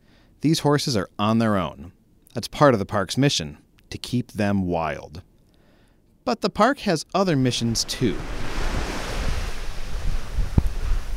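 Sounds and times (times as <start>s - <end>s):
speech: 0.4s - 5.3s, 6.3s - 8.4s
surf washing in on a sandy beach: 7.4s - 11.1s
wind buffeting the microphone: 7.6s - 11.1s.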